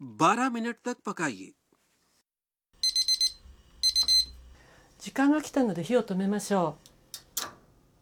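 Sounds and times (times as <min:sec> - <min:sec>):
speech: 0:00.2 - 0:01.6, 0:05.0 - 0:07.2
digital kitchen timer beeping at the end of rice cooking time: 0:02.8 - 0:04.4.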